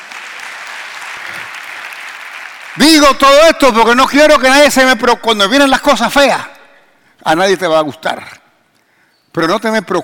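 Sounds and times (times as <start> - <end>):
audience applause: 0.0 - 3.0
speech: 2.8 - 6.6, 7.2 - 8.4, 9.3 - 10.0.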